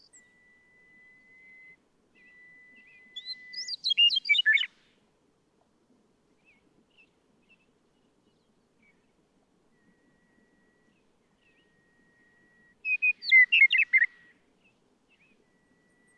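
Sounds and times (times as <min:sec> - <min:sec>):
Western meadowlark song: 0:00.0 - 0:04.9, 0:06.4 - 0:16.1.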